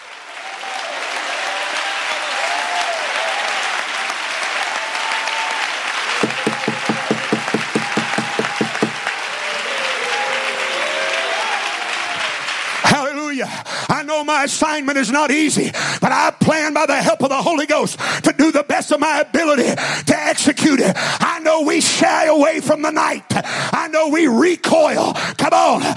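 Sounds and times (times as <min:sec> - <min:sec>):
large audience clapping: 0:00.0 - 0:13.2
speech: 0:14.2 - 0:25.9.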